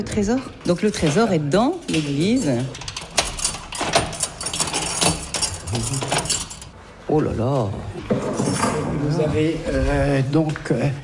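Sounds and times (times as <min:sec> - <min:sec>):
speech: 0:00.0 - 0:02.8, 0:05.7 - 0:06.1, 0:07.1 - 0:08.4, 0:09.0 - 0:11.0
keys unlocking a door lock: 0:00.8 - 0:06.7.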